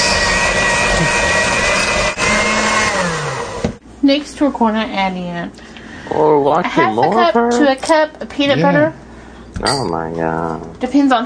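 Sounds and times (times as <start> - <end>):
electric mixer beating softened butter: 0.0 - 3.8
speech: 4.1 - 9.0, 9.6 - 11.2.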